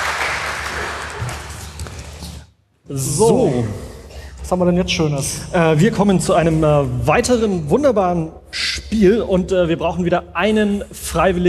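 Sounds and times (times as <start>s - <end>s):
audience applause: 0.0s - 2.2s
speech: 2.9s - 3.8s, 4.5s - 11.4s.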